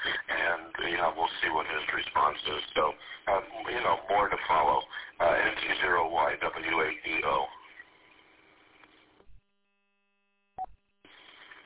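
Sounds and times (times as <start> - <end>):
hissy radio audio on a radio repeater: 0.0 - 9.2.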